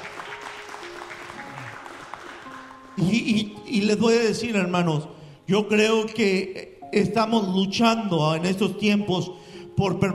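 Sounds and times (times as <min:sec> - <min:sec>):
audience applause: 0:00.0 - 0:03.0
speech: 0:03.0 - 0:10.1.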